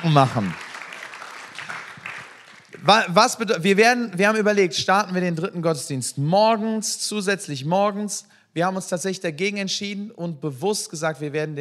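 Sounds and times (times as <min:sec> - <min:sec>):
speech: 0:00.0 - 0:00.6, 0:02.8 - 0:11.6
church congregation applauding during a service: 0:00.0 - 0:03.5.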